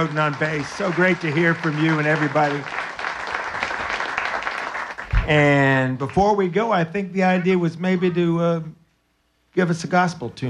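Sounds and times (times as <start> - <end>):
speech: 0.0 - 2.9, 5.3 - 8.8, 9.6 - 10.4
audience applause: 0.0 - 6.3.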